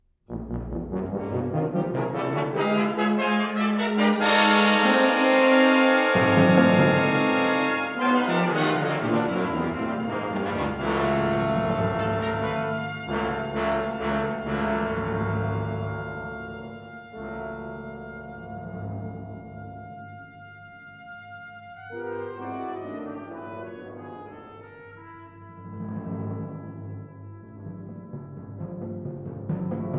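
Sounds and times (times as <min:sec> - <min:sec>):
brass and percussion orchestral piece: 0:00.3 - 0:29.9.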